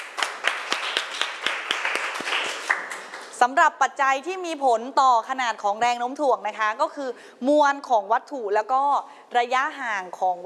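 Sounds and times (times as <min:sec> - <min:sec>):
students clapping for a classmate: 0:00.0 - 0:03.4
speech: 0:03.4 - 0:10.4.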